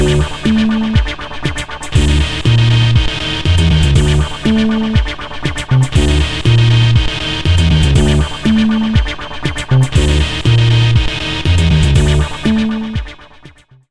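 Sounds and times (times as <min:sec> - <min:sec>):
synthesizers: 0:00.0 - 0:13.8.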